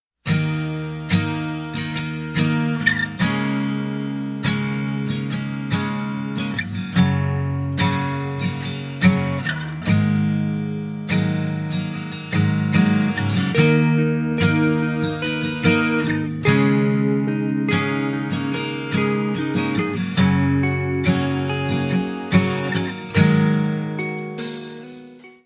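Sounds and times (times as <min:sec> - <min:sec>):
instrumental music: 0:00.2 - 0:25.4.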